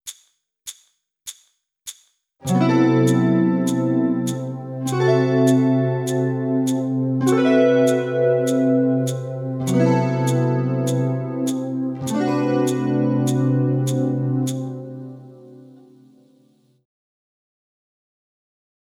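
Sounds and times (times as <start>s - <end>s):
guitar playing: 2.4s - 16.2s.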